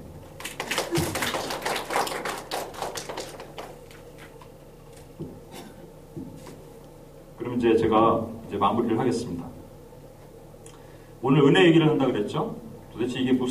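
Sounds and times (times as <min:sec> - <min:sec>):
audience applause: 0:00.4 - 0:04.0
speech: 0:07.6 - 0:09.4, 0:11.2 - 0:13.5.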